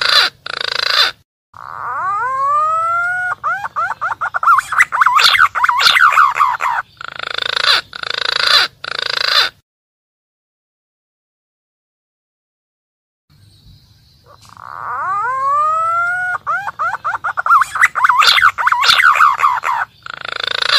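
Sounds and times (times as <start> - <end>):
green pigeon calling: 0.0 - 9.6, 14.2 - 20.7.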